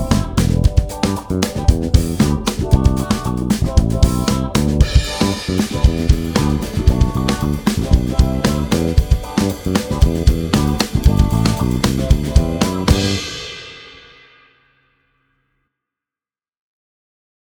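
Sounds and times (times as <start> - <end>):
G major chord at the 3rd fret: 0.0 - 13.5.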